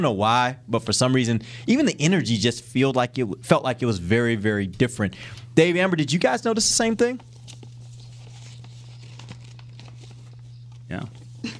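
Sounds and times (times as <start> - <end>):
speech: 0.0 - 7.3, 10.9 - 11.2
papers rustling: 6.6 - 11.5.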